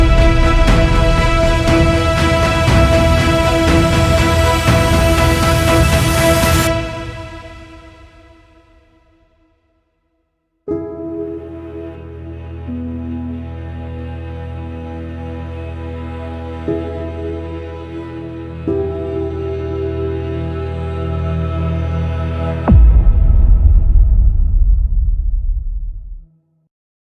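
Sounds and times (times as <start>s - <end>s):
cinematic action trailer music: 0.0s - 8.9s, 15.1s - 26.2s.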